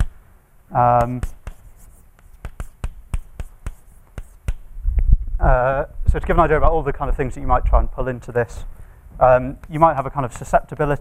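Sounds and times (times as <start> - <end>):
speech: 0.7 - 1.4, 5.5 - 10.9
writing on a board: 0.8 - 4.7, 9.6 - 10.9.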